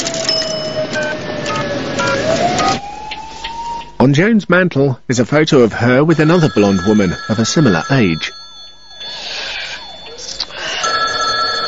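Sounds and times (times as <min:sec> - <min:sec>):
telephone with bright electronic trilling ring: 0:00.0 - 0:02.8, 0:06.1 - 0:11.6
speech: 0:04.0 - 0:08.4.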